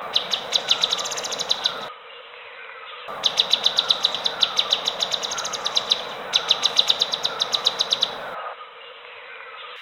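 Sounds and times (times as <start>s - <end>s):
bulbul singing: 0.0s - 1.9s, 3.1s - 8.4s.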